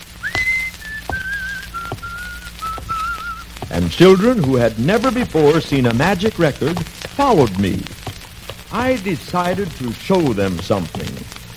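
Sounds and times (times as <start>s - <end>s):
faint low hum: 0.0s - 11.5s
person whistling a melody: 0.2s - 4.3s
soft taps: 0.2s - 10.0s
speech: 3.8s - 7.9s, 8.7s - 11.2s.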